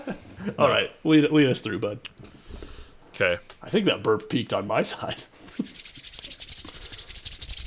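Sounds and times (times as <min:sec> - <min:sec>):
speech: 0:00.6 - 0:02.1, 0:03.2 - 0:05.3
hands rubbing together to warm them: 0:05.4 - 0:07.6.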